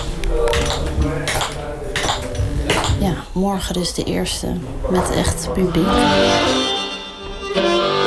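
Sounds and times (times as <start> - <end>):
tap shoes clicking on a floor: 0.0 - 3.0
speech: 3.0 - 6.7, 7.6 - 7.9.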